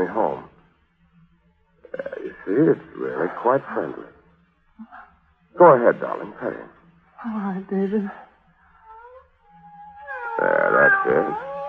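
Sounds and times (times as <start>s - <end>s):
speech: 0.0s - 0.5s, 2.4s - 4.1s, 4.8s - 8.3s, 10.4s - 11.5s
cat meowing: 10.1s - 11.6s.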